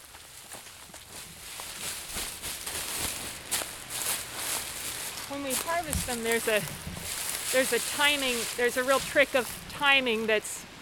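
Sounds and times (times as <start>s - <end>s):
people treading on dry bean pods folded inside a sheet: 0.0s - 10.3s
speech: 5.4s - 6.9s, 7.5s - 10.6s.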